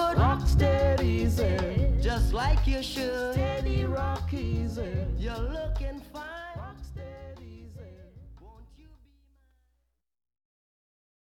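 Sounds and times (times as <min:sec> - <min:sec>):
reggae music: 0:00.0 - 0:09.0.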